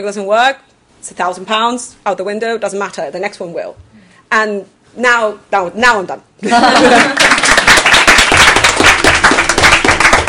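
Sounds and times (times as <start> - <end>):
speech: 0.0 - 7.8
laughter: 6.4 - 7.4
audience clapping: 6.8 - 10.2.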